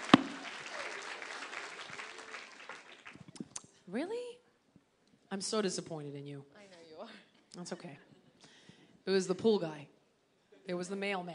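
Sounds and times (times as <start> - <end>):
light scattered clapping from a small group: 0.0 - 3.6
speech: 3.9 - 4.4, 5.3 - 8.1, 9.0 - 10.0, 10.6 - 11.3.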